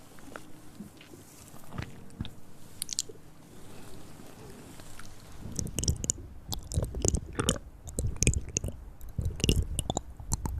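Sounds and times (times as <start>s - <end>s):
hand sounds and movements: 0.0s - 10.5s
mouth sounds: 4.4s - 10.5s.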